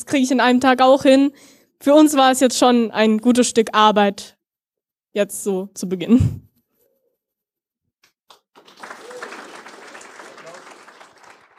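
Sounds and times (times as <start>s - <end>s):
speech: 0.0s - 4.4s, 5.1s - 6.5s
audience applause: 8.3s - 11.5s.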